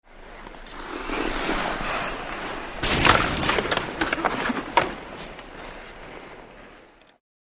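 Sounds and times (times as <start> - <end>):
hockey players fighting: 0.7 - 6.5.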